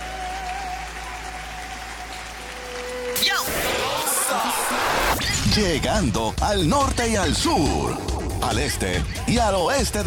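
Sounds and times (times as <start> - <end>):
audience applause: 0.0 - 5.2
speech: 5.6 - 10.0.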